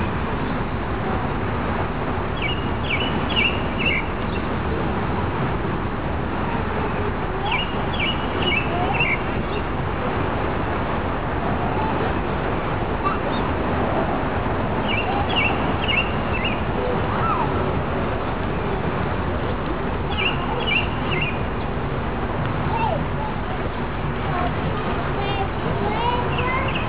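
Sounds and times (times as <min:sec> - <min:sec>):
constant loud rushing of water: 0:00.0 - 0:26.8
robin singing: 0:02.4 - 0:04.5, 0:07.4 - 0:09.7, 0:14.8 - 0:16.7, 0:20.0 - 0:21.7, 0:25.3 - 0:26.8.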